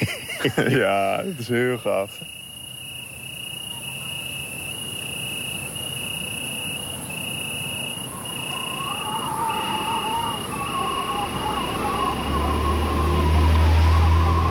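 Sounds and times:
laughter: 0.0s - 2.2s
tree crickets chirping: 0.0s - 14.4s
speech: 0.4s - 2.4s.

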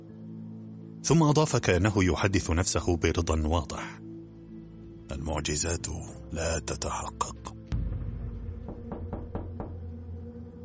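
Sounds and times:
speech: 1.0s - 4.0s, 5.2s - 7.6s
knocking on a wooden door: 7.8s - 10.0s.

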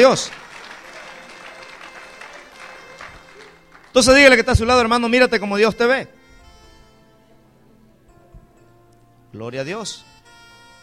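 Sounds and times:
speech: 0.0s - 0.4s, 4.0s - 6.2s, 9.3s - 10.1s
church congregation applauding during a Spanish-language sermon: 0.0s - 5.4s
church congregation crowd noise: 3.0s - 5.4s.

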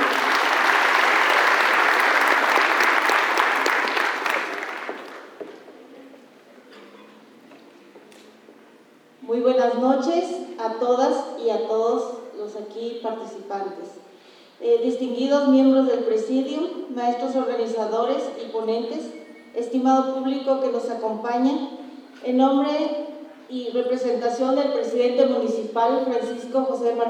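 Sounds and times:
crowd applauding at an event in San Cristóbal de las Casas: 0.0s - 5.7s
speech: 9.9s - 14.0s, 14.6s - 27.0s.

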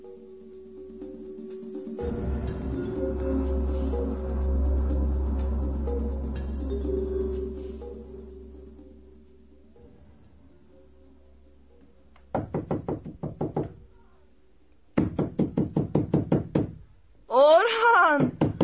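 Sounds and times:
low steady hum: 0.0s - 12.4s
loud knocking on a door: 12.3s - 13.8s, 15.0s - 16.8s, 18.2s - 18.6s.

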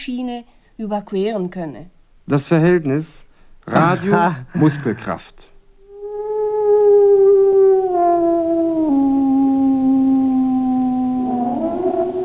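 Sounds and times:
speech: 0.0s - 5.5s
laughter: 3.7s - 5.4s
dog howling: 6.4s - 12.2s.

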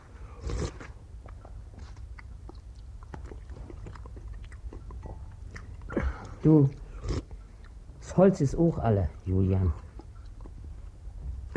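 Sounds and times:
someone biting and chewing a meal: 0.0s - 11.5s
speech: 6.4s - 6.8s, 8.2s - 9.8s.

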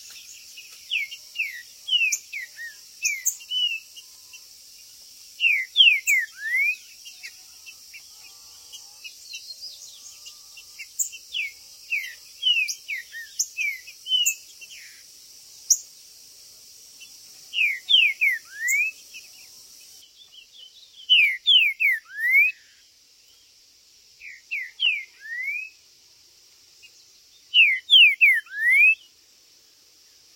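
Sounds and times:
green-winged saltator song: 0.0s - 4.4s, 5.4s - 7.4s, 10.8s - 15.0s, 17.5s - 19.2s, 20.2s - 22.8s, 24.2s - 25.8s, 27.5s - 29.1s
high hiss: 0.0s - 30.3s.

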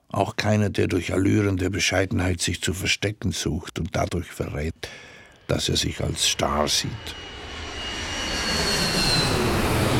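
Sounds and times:
speech: 0.2s - 7.3s
airplane cabin engine drone: 5.5s - 9.9s.

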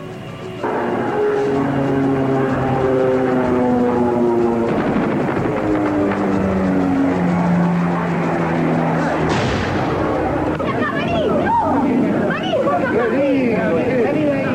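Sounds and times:
airplanes flying over the Casa Rosada: 0.0s - 14.5s.

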